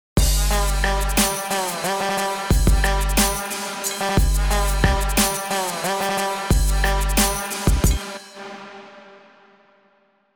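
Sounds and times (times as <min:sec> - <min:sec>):
trap beat: 0:00.2 - 0:08.4.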